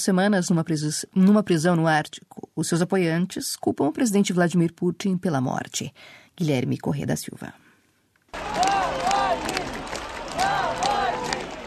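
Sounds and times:
speech: 0.0 - 7.6
crowd applauding in Moscow: 8.3 - 11.6.

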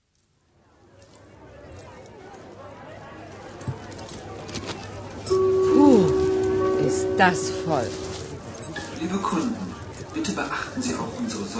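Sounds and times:
murmur of a bustling department store crowd: 0.0 - 11.5
clear sustained tone that warbles and slides downward: 5.3 - 8.4
speech: 7.2 - 8.0, 9.0 - 11.5.

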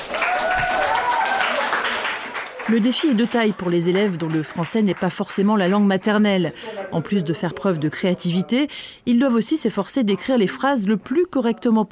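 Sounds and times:
classmates applauding in a school class: 0.0 - 5.8
speech: 2.7 - 11.9.

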